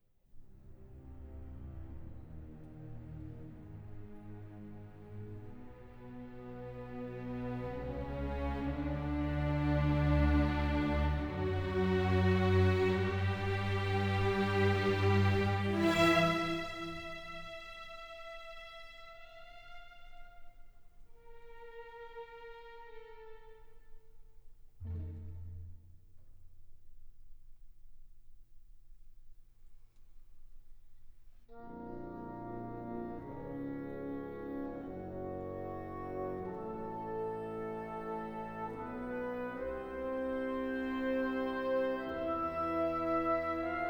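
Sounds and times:
orchestra playing a divertimento: 0:00.5 - 0:26.3, 0:31.5 - 0:43.8.

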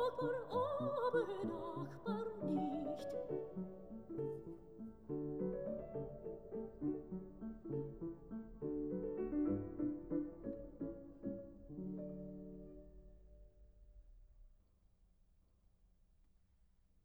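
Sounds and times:
person singing: 0:00.0 - 0:03.5
piano: 0:00.0 - 0:14.0.

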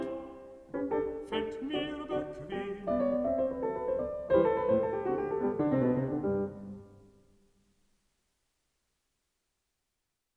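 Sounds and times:
person singing: 0:00.0 - 0:03.4
piano: 0:00.0 - 0:07.7.

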